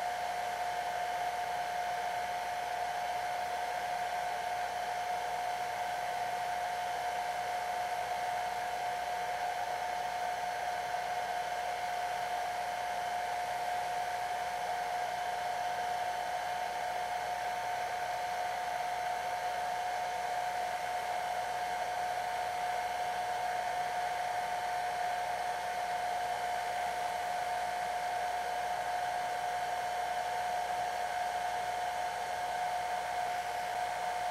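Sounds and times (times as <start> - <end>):
blow dryer blowing: 0.0 - 34.2.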